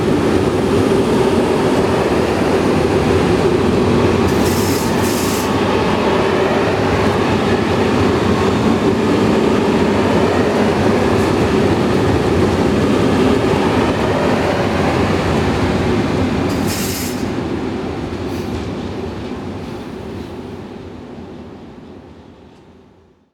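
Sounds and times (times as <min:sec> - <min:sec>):
diesel trains: 0:00.0 - 0:23.3.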